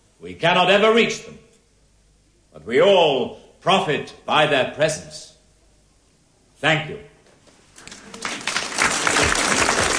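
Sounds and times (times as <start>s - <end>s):
speech: 0.2s - 1.4s, 2.6s - 5.3s, 6.6s - 7.1s
audience applause after a speech: 7.8s - 9.9s.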